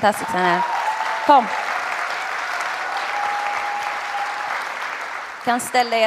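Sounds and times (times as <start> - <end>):
speech: 0.0 - 1.6, 5.5 - 6.0
audience applause: 0.0 - 6.0.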